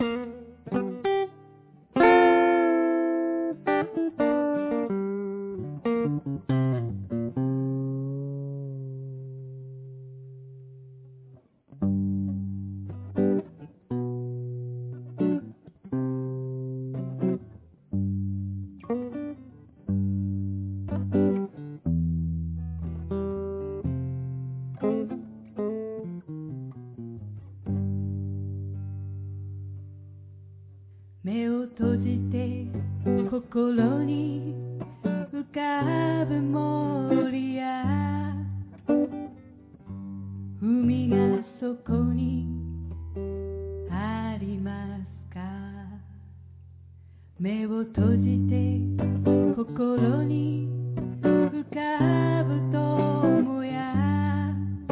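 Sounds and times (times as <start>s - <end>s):
blues music: 0.0s - 45.8s, 48.0s - 54.8s.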